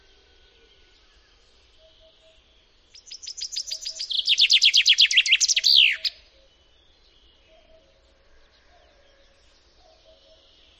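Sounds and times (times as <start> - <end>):
common chaffinch singing: 1.8 - 6.3.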